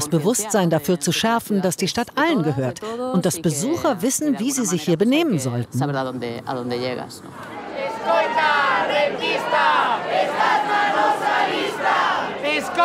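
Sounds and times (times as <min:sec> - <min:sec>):
speech: 0:00.1 - 0:12.8
residents shouting protest chants against tourism in Santiago de Compostela: 0:07.4 - 0:12.8.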